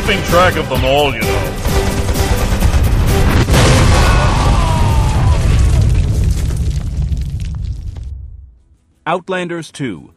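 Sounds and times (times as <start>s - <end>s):
speech: 0.1s - 2.3s, 9.1s - 10.1s
crackling debris: 2.0s - 8.8s
grenade explosion: 3.2s - 8.6s.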